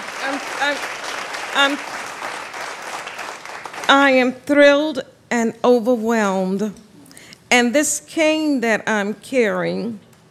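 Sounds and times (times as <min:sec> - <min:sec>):
voices calling out: 0:00.0 - 0:02.0
audience giving a standing ovation at an evening event: 0:00.0 - 0:04.1
speech: 0:00.3 - 0:02.0, 0:03.9 - 0:06.8, 0:07.5 - 0:10.0.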